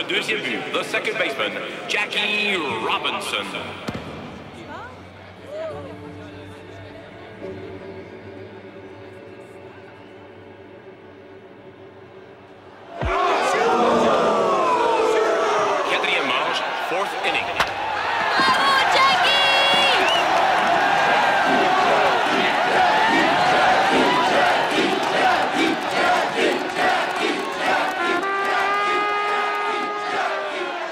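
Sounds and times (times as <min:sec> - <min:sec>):
speech: 0:00.0 - 0:04.0
large crowd cheering at a baseball game: 0:00.0 - 0:05.7, 0:12.7 - 0:30.9
shouts and whistles from the crowd: 0:18.4 - 0:20.6, 0:27.8 - 0:30.9.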